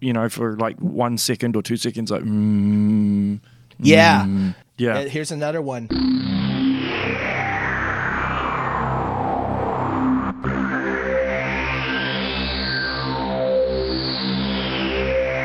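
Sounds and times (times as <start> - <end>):
speech: 0.0 - 6.4
atmospheric synth music theme from a video game: 5.9 - 15.4.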